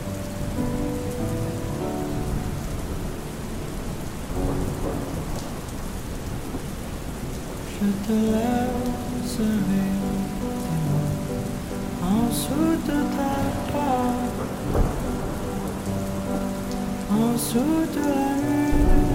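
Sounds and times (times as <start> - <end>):
rain falling: 0.0 - 19.1
person singing: 7.7 - 19.1
speech: 7.8 - 10.6, 12.0 - 14.9, 17.2 - 18.6.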